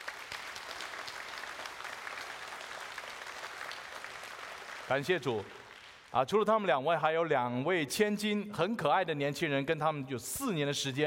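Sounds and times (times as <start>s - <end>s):
audience applauding: 0.0s - 6.1s
speech: 4.9s - 11.0s.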